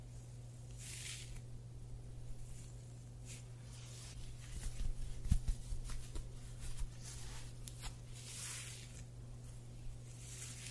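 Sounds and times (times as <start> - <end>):
fingers rustling through hair in a scalp massage: 0.1 - 1.5, 2.3 - 10.6.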